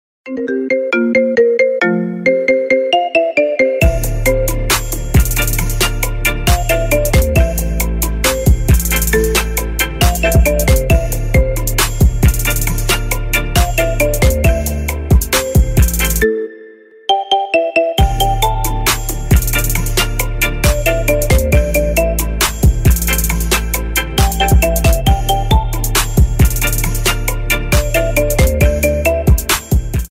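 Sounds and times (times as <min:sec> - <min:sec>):
ringtone remix: 0:00.3 - 0:30.0.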